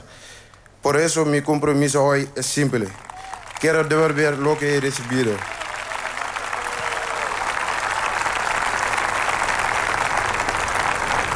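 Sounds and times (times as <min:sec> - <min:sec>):
speech: 0:00.9 - 0:05.6
audience applause: 0:02.8 - 0:11.3.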